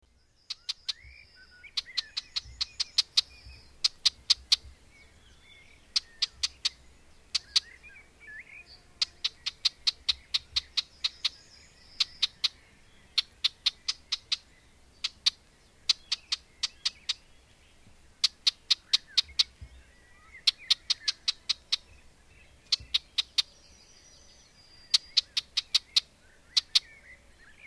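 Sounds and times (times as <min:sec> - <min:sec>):
bird rapid ticking calls: 0:00.0 - 0:27.6.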